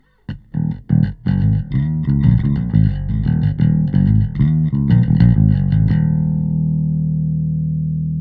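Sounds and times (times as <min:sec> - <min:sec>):
bass: 0:00.0 - 0:08.1.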